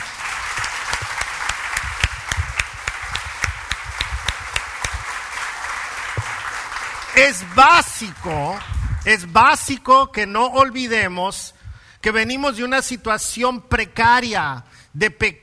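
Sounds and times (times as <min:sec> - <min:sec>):
audience applause: 0:00.0 - 0:09.3
speech: 0:07.2 - 0:15.4.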